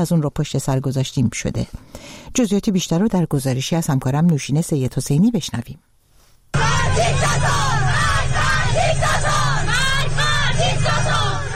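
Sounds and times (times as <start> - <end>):
speech: 0.0 - 5.9, 7.0 - 7.6
schoolgirls shouting protest slogans: 6.6 - 11.5.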